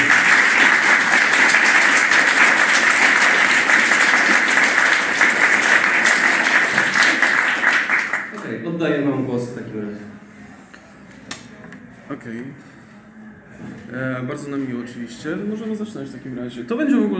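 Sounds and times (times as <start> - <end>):
live audience applause in Toruń: 0.0 - 8.4
speech: 12.1 - 12.8, 13.6 - 17.1.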